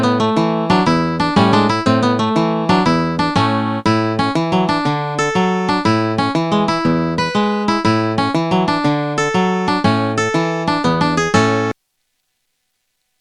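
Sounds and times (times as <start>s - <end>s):
happy guitar music: 0.0s - 11.8s.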